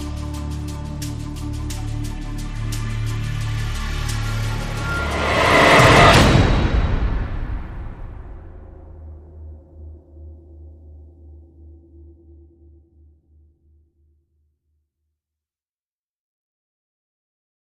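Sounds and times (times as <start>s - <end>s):
drums: 0.0s - 9.1s.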